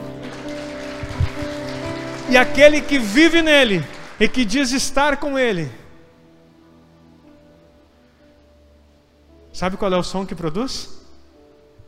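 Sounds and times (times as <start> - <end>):
audience applauding: 0.0 - 5.3
speech: 2.3 - 5.8, 9.6 - 11.0.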